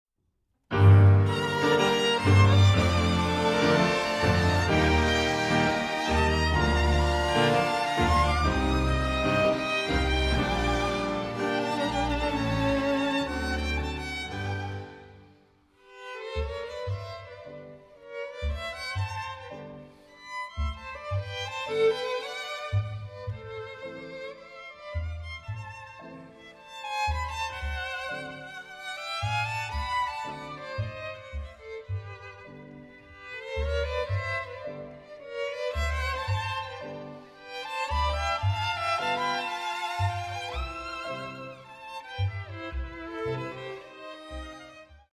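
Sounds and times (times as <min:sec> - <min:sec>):
chamber orchestra: 0:00.7 - 0:15.3, 0:27.3 - 0:45.0
solo violin: 0:00.7 - 0:45.1.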